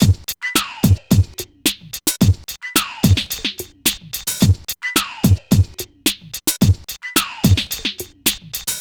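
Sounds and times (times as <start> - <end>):
hip hop drum beat: 0.0 - 8.7.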